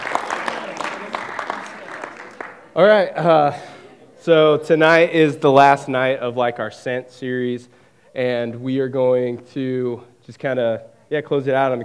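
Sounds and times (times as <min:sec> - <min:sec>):
audience clapping: 0:00.0 - 0:04.3
laughter: 0:00.0 - 0:06.2
speech: 0:02.8 - 0:11.8.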